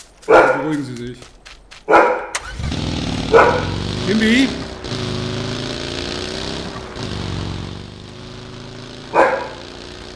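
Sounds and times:
seven-year-old dog barking: 0.2s - 0.8s, 1.8s - 2.4s, 3.3s - 3.8s, 9.1s - 9.7s
speech: 0.2s - 1.4s, 3.4s - 4.6s
noisy rumble: 2.4s - 10.1s.

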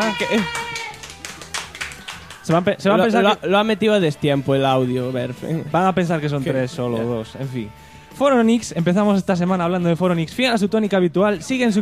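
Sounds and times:
applause: 0.0s - 2.8s
speech: 0.1s - 0.7s, 2.5s - 11.8s.

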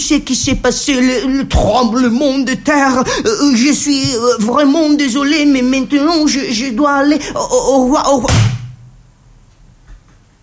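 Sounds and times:
speech: 0.1s - 8.5s
hotel room door slammed shut: 8.3s - 8.9s.

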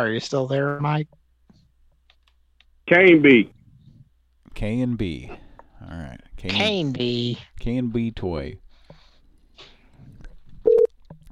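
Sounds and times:
speech: 0.0s - 1.2s, 2.9s - 3.6s, 4.6s - 8.6s
telephone touch-tone beep calling a toy order line: 10.7s - 10.9s.

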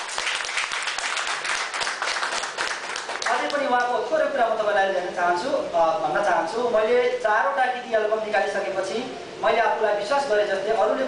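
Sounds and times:
audience applause welcoming a guest at a Nepali event: 0.0s - 3.6s
speech: 3.4s - 11.0s.

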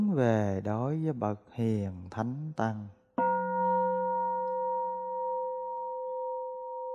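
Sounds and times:
speech: 0.2s - 3.0s
bell ringing: 3.2s - 6.8s.

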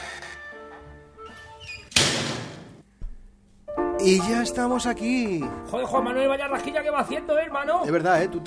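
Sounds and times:
door of the premises opening: 0.7s - 2.7s
door closing thud: 1.9s - 2.8s
speech: 4.0s - 8.4s.

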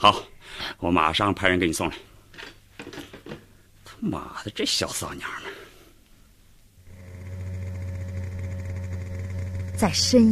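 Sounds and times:
speech: 0.0s - 3.0s, 4.0s - 5.6s, 9.8s - 10.3s
motorcycle speeding through streets at night: 6.9s - 10.3s.

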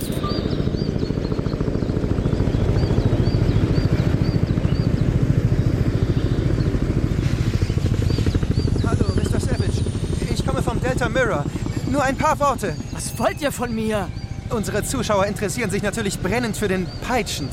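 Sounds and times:
fleet of helicopters hovering and landing in heather: 0.0s - 17.5s
speech: 11.0s - 17.5s.

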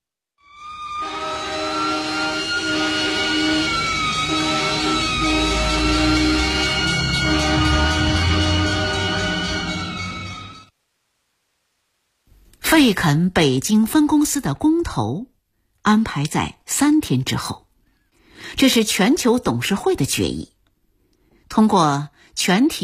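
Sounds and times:
three fire engines speeding past: 0.8s - 10.7s
speech: 12.8s - 15.3s, 15.9s - 17.6s, 18.5s - 20.6s, 21.5s - 22.8s.

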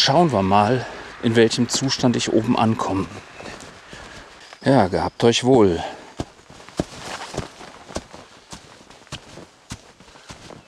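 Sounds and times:
speech: 0.0s - 3.3s, 4.6s - 6.0s
heavy breathing climbing stairs uphill: 0.8s - 1.2s, 3.2s - 4.4s, 5.7s - 8.5s
footsteps climbing stairs uphill: 6.1s - 10.6s.

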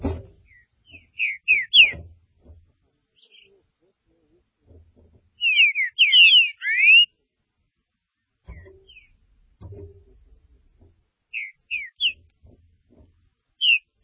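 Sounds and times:
faint low muffled knocks: 0.0s - 3.0s, 4.6s - 5.4s, 8.4s - 11.1s, 12.0s - 13.5s
green-winged saltator song: 0.4s - 2.0s, 5.4s - 7.1s, 8.5s - 9.1s, 11.3s - 12.3s, 13.6s - 14.0s.

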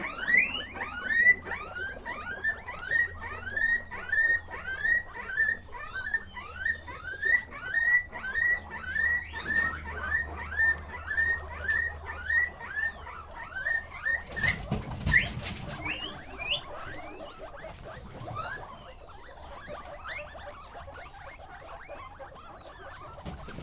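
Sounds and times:
guinea pig wheeks: 0.0s - 23.6s
shuffling and rustling: 14.2s - 18.8s.

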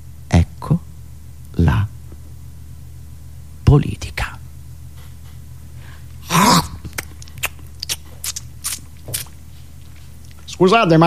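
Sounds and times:
speech: 3.7s - 4.3s, 10.6s - 11.0s
person eating something: 6.7s - 10.5s.

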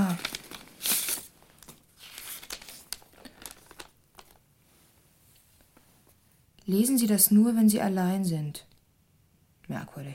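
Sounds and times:
paper letter being opened and unfolded: 0.0s - 4.4s
speech: 6.7s - 8.7s, 9.7s - 10.1s.

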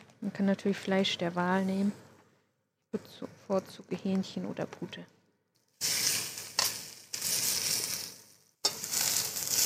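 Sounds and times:
speech: 0.2s - 2.0s, 2.9s - 5.2s
scraping stirs in a pan: 5.8s - 9.6s
vegetables sizzling in a pan: 5.8s - 9.6s.

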